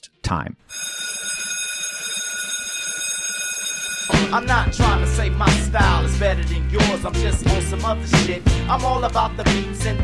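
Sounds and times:
speech: 0:00.0 - 0:00.8, 0:04.2 - 0:10.0
school bell ringing: 0:00.7 - 0:05.2.

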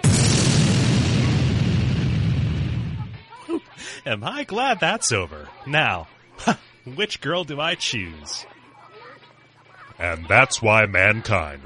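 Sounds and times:
rumbling explosion from the video game Snatcher: 0:00.0 - 0:03.2
speech: 0:04.0 - 0:08.5, 0:10.0 - 0:11.6.

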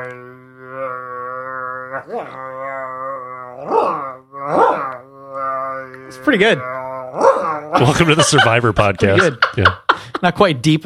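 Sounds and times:
voice imitating a didgeridoo: 0:00.0 - 0:08.5
speech: 0:02.0 - 0:02.6, 0:06.2 - 0:10.8
laughter: 0:07.5 - 0:10.4.

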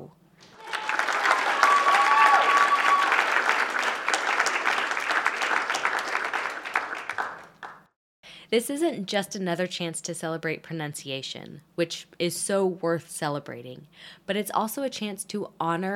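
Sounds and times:
people cheering: 0:00.4 - 0:07.7
speech: 0:08.5 - 0:15.9.

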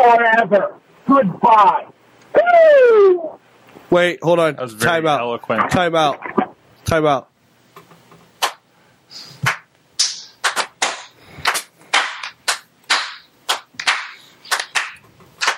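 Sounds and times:
speech: 0:00.2 - 0:07.3
slow clap: 0:08.4 - 0:08.6, 0:09.4 - 0:15.5.

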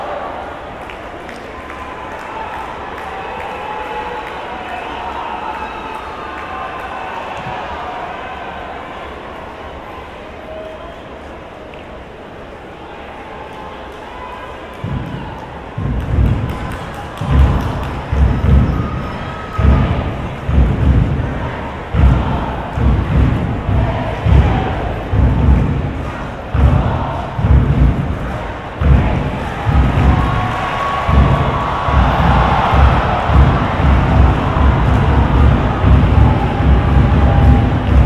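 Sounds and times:
soccer stadium crowd murmur: 0:00.0 - 0:38.0
crowd chanting: 0:14.8 - 0:38.0
heavy claps or drum thumps: 0:14.8 - 0:38.0.

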